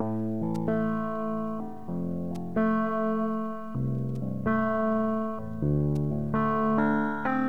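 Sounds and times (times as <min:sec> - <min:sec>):
sad bass loop: 0:00.0 - 0:07.4.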